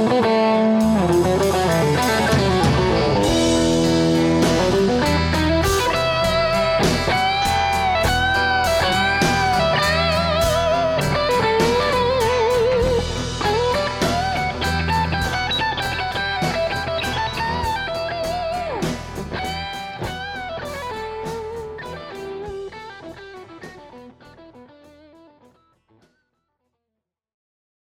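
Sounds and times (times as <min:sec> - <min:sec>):
Heritage H150 electric guitar with Montys pickups: 0:00.0 - 0:26.0.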